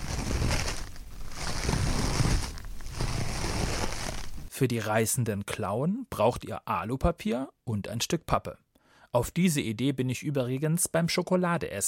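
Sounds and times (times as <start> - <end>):
toilet paper rubbed between hands: 0.0 - 4.5
speech: 4.6 - 11.8.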